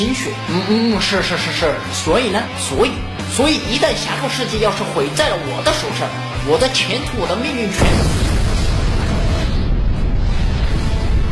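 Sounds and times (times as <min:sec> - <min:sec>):
speech: 0:00.0 - 0:08.4
explosion: 0:07.8 - 0:11.2.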